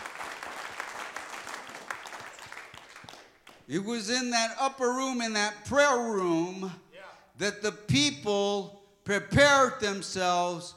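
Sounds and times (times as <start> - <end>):
light audience applause: 0.0 - 3.7
speech: 3.7 - 6.8, 7.4 - 10.7.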